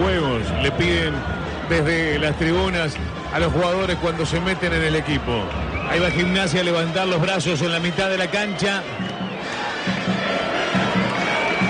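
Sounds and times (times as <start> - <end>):
large stadium crowd roaring: 0.0 - 11.6
scattered applause: 0.0 - 11.6
speech: 0.6 - 9.1
shrill whistles: 5.6 - 11.6.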